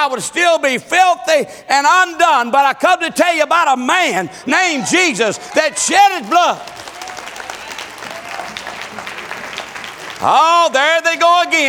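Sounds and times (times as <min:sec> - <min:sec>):
speech: 0:00.0 - 0:06.9, 0:10.2 - 0:11.6
audience applause: 0:04.6 - 0:11.6.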